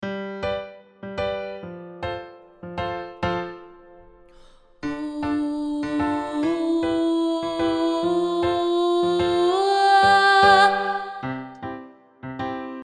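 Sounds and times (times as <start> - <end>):
voice: 4.8 - 11.5.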